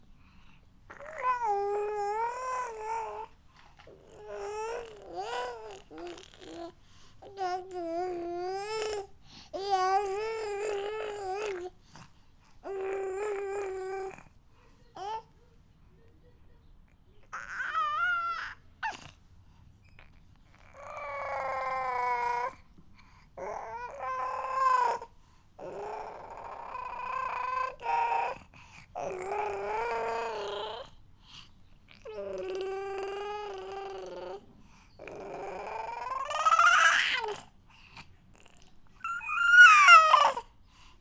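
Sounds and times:
baby cooing: 0:00.9 - 0:11.8, 0:12.6 - 0:14.4, 0:15.0 - 0:15.3, 0:17.2 - 0:19.2, 0:19.9 - 0:22.6, 0:23.4 - 0:31.0, 0:31.9 - 0:34.4, 0:35.0 - 0:37.5, 0:38.4 - 0:40.5.

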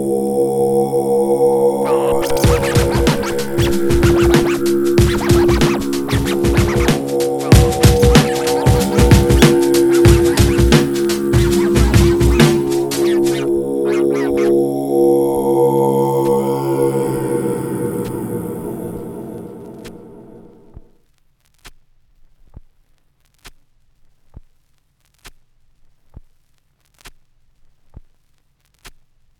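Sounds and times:
Tibet beat: 0:00.1 - 0:20.9.

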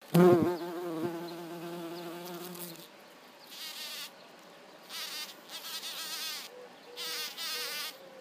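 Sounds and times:
bumblebee buzzing on flowers: 0:00.1 - 0:02.9, 0:03.5 - 0:04.1, 0:04.9 - 0:08.0.

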